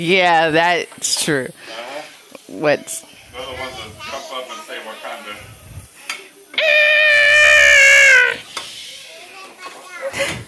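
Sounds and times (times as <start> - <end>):
speech: 0.0 - 1.8, 2.5 - 5.1
baby crying: 6.6 - 8.5.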